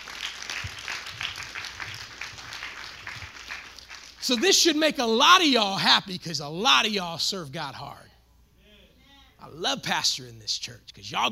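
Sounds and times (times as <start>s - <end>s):
crowd clapping: 0.0s - 4.8s
speech: 4.3s - 8.1s, 9.5s - 11.3s.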